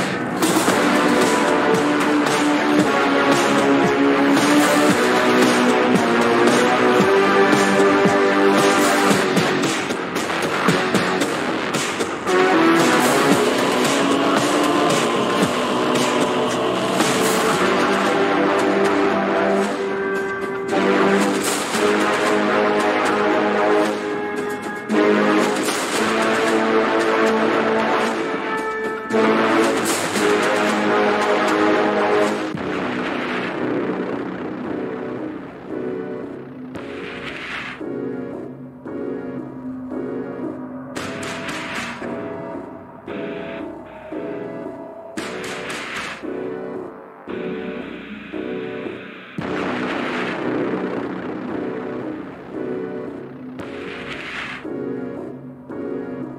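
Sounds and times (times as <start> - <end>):
intermission music: 0.2 - 56.3.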